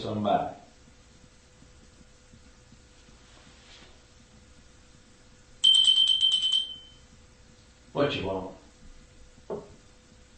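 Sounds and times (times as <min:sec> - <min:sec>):
speech: 0:00.0 - 0:00.6, 0:08.0 - 0:08.6
small bell jangling: 0:05.6 - 0:07.0.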